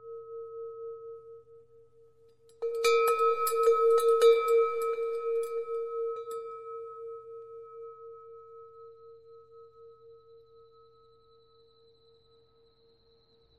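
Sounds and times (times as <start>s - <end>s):
bell: 2.3s - 12.7s.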